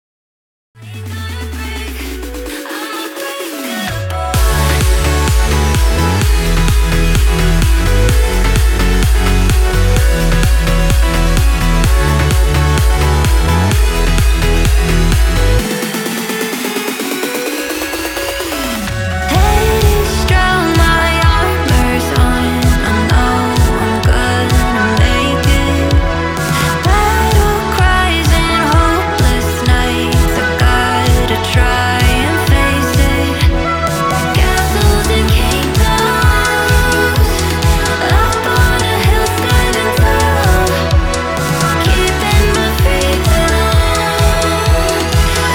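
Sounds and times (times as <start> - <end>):
progressive music at 128 BPM: 0.8 - 45.5.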